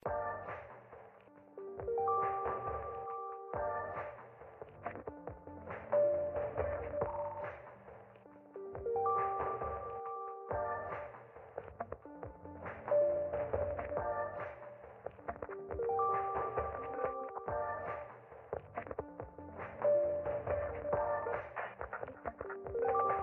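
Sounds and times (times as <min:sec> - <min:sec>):
muffled music track: 0:00.0 - 0:23.2.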